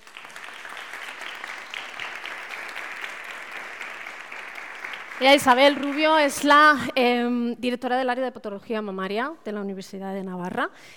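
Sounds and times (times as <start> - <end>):
audience applause: 0.0 - 6.4
speech: 5.2 - 10.9.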